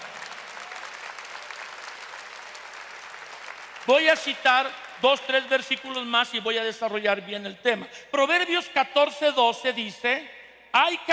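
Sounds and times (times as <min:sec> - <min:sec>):
audience applause: 0:00.0 - 0:03.9
speech: 0:03.9 - 0:11.1.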